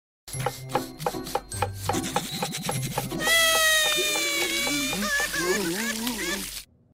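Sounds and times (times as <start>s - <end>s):
knife cutting onions: 0.3s - 5.7s
person crying: 3.2s - 6.6s.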